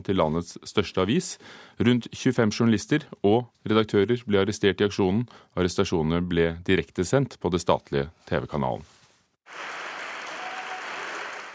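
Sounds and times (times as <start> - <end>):
speech: 0.0 - 9.8
applause from staff and demonstrators: 9.5 - 11.5.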